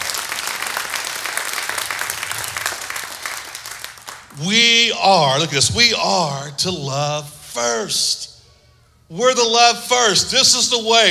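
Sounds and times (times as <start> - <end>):
audience hand clapping: 0.0 - 4.5
speech: 4.4 - 8.3, 9.1 - 11.0.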